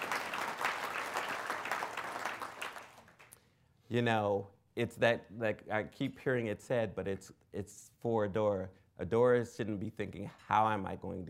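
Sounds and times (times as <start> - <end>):
audience applause: 0.0 - 3.3
speech: 3.9 - 11.2.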